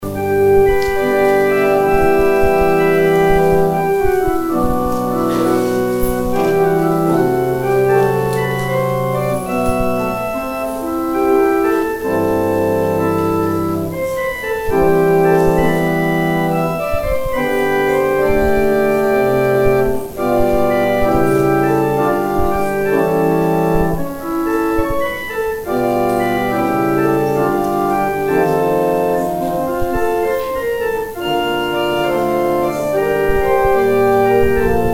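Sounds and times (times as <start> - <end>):
organ interlude: 0.0 - 34.9.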